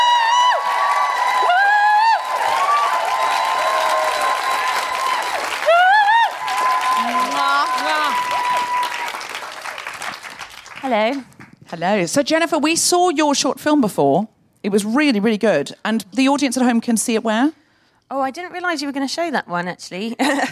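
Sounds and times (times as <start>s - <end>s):
audience cheering and high whoops: 0.0s - 9.4s
audience applause welcoming a guest: 0.0s - 11.4s
speech: 10.9s - 20.4s.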